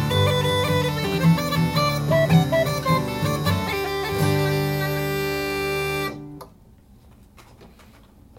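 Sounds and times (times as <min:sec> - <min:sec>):
jig music: 0:00.0 - 0:06.5.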